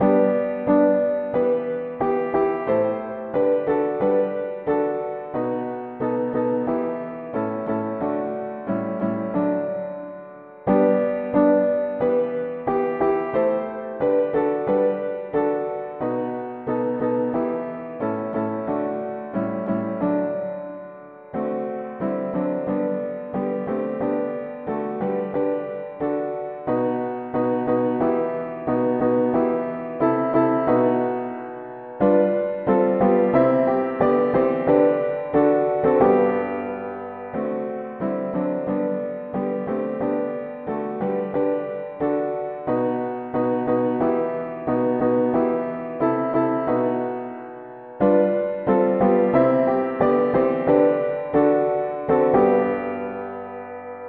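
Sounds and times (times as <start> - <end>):
piano: 0.0 - 54.0.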